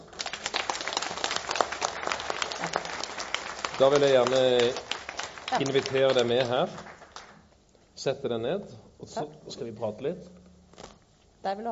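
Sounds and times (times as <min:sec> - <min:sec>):
audience applause: 0:00.0 - 0:07.4
speech: 0:03.8 - 0:04.9, 0:05.5 - 0:06.9, 0:08.0 - 0:10.4, 0:11.4 - 0:11.7.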